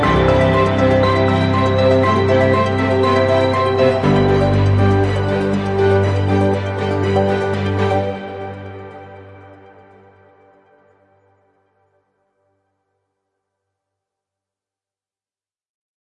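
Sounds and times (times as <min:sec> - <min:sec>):
ambient music: 0:00.0 - 0:11.7.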